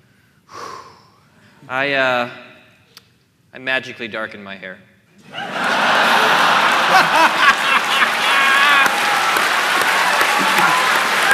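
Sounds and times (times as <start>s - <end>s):
deep breath drawn in sharply: 0.0s - 1.7s
speech: 1.6s - 2.5s, 3.6s - 5.6s, 6.2s - 7.6s
laughter: 5.2s - 11.3s.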